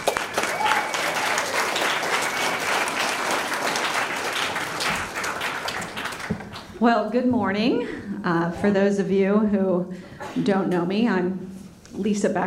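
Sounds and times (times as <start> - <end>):
audience welcome applause: 0.0 - 6.8
speech: 6.8 - 11.4, 12.0 - 12.4.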